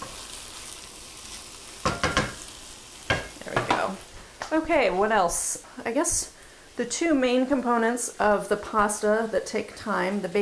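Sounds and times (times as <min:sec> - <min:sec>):
stirring onions in a pan on the stove: 0:00.0 - 0:04.3
onions frying with a quiet sizzle: 0:00.0 - 0:10.4
speech: 0:04.5 - 0:10.4.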